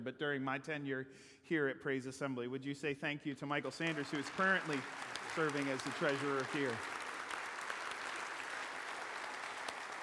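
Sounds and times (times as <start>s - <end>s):
speech: 0.0s - 7.0s
audience applause: 3.7s - 10.0s.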